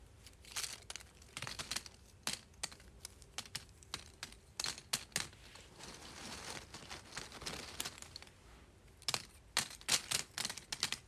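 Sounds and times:
small cardboard pieces shuffled, clicking and tapping: 0.4 - 5.3, 9.0 - 11.0
faint papery rustle: 5.3 - 8.3.

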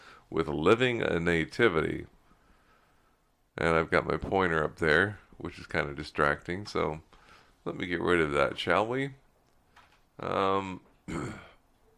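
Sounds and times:
speech: 0.3 - 2.2, 3.6 - 9.2, 10.2 - 11.5
person clearing throat: 11.1 - 11.6.

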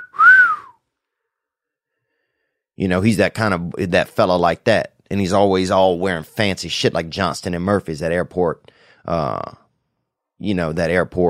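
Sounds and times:
wolf whistle: 0.0 - 0.8
speech: 2.8 - 9.6, 10.4 - 11.2.

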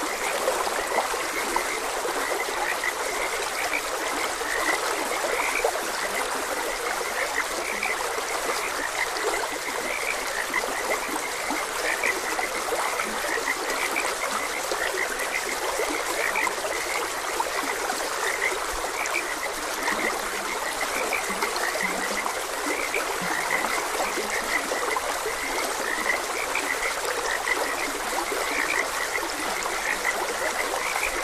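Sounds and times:
flowing trickling stream: 0.0 - 31.2
frogs croaking: 0.0 - 31.2.

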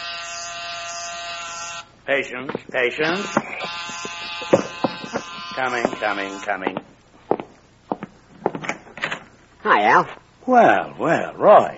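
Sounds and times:
electric doorbell buzzer: 0.0 - 1.9, 3.0 - 6.5
speech: 2.1 - 3.9, 5.6 - 6.8, 9.6 - 11.7.

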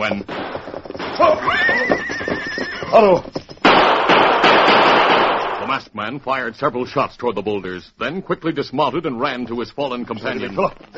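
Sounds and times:
speech: 0.0 - 0.4, 3.0 - 3.4, 6.0 - 10.9
horses galloping: 0.0 - 5.7, 8.4 - 10.9
horse neighing: 1.0 - 3.3.

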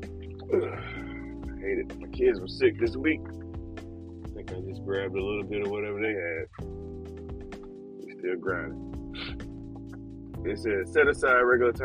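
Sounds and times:
person sniffling: 0.5 - 1.2
speech: 1.8 - 3.4, 4.5 - 7.2, 8.3 - 8.9, 10.4 - 11.8.

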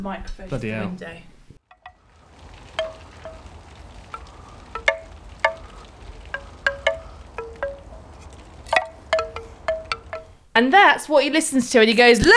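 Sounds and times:
speech: 0.0 - 1.3, 10.6 - 12.3
soft steady wind: 1.6 - 12.3
wind chimes in a back garden: 1.7 - 10.4.

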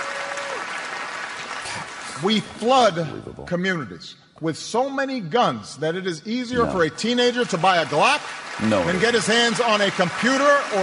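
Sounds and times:
crowd applause: 0.0 - 2.6, 6.6 - 10.8
speech: 2.2 - 10.8.

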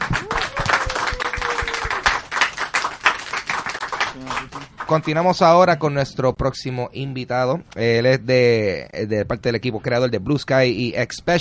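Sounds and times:
audience applause for a guest: 0.0 - 5.2
speech: 4.9 - 11.3.

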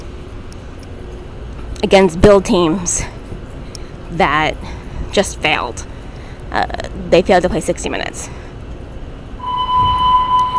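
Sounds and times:
low rumble: 0.0 - 10.5
speech: 1.8 - 3.2, 4.1 - 5.9, 6.5 - 8.4
mall emergency alarm test beep: 9.4 - 10.5.

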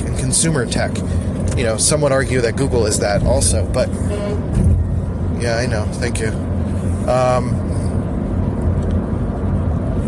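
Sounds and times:
road and engine rumble: 0.0 - 10.0
speech: 0.3 - 4.5, 5.4 - 6.5, 7.1 - 7.6
car horn honk: 3.9 - 4.9.

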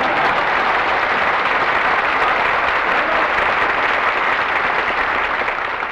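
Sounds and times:
audience applause for a bandleader's entrance in a nightclub comedy skit: 0.0 - 5.9.

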